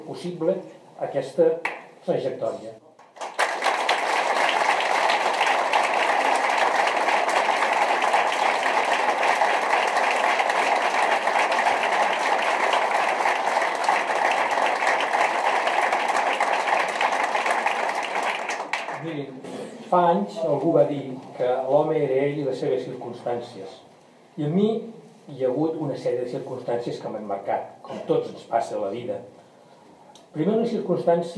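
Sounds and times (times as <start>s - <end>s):
speech: 0.1s - 2.8s, 19.9s - 29.3s, 30.3s - 31.3s
audience applause: 3.0s - 19.1s.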